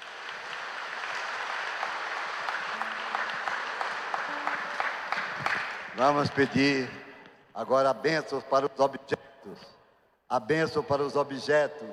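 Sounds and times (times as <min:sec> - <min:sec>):
audience applauding: 0:00.0 - 0:07.4
speech: 0:06.0 - 0:07.0, 0:07.6 - 0:11.9.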